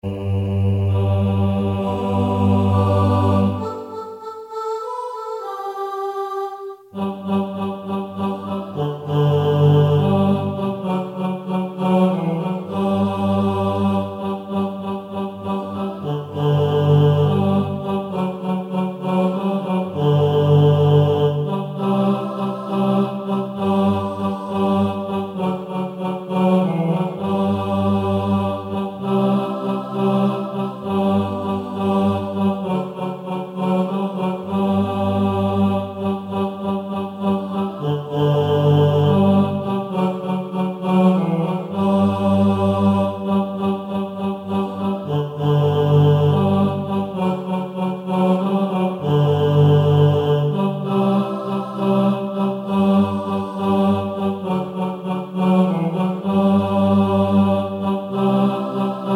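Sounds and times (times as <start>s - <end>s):
tenor singing: 0.0s - 59.1s.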